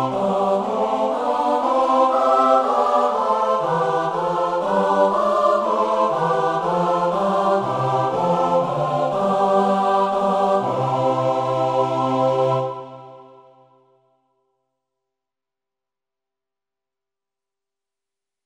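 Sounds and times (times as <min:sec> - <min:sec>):
SATB choir singing: 0:00.0 - 0:13.8.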